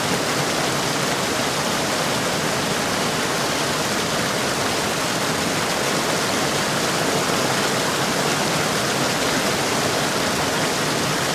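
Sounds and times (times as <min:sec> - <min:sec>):
rushing water from a watermill: 0:00.0 - 0:11.3.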